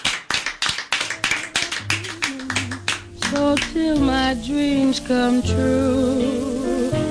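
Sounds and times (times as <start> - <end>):
audience applause: 0.0 - 3.8
speech: 3.3 - 7.0.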